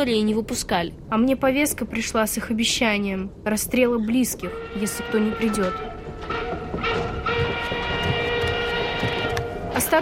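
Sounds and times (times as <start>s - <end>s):
speech: 0.0s - 6.4s
moving freight train car rumbling: 0.0s - 10.0s
wheels clattering: 5.4s - 10.0s.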